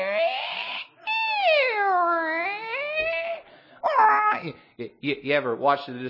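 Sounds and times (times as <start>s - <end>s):
human voice imitating whale calls: 0.0s - 4.6s
speech: 4.4s - 6.0s.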